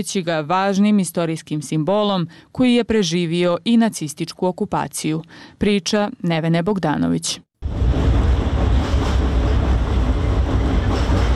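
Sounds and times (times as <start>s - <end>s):
speech: 0.0s - 7.5s
tram rumbling across a bridge on the Sava: 7.6s - 11.3s.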